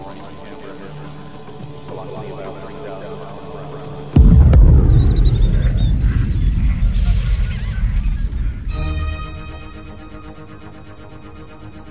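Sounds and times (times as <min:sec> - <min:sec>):
loud sustained low rumble after space shuttle sonic boom: 0:04.0 - 0:11.1
space shuttle double sonic boom on arrival: 0:04.2 - 0:10.1.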